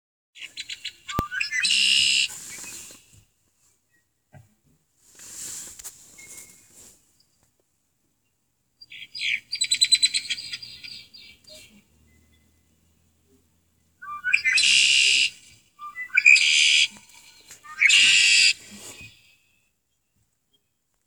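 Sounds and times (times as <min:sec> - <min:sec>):
red-winged blackbird song: 0:00.4 - 0:03.1, 0:08.2 - 0:20.8.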